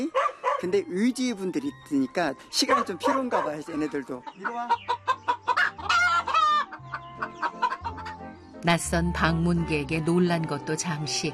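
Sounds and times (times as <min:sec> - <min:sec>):
speech: 0:00.0 - 0:05.2, 0:08.6 - 0:11.3
chickens clucking while eating: 0:02.7 - 0:08.5
chicken squawk: 0:04.3 - 0:08.2.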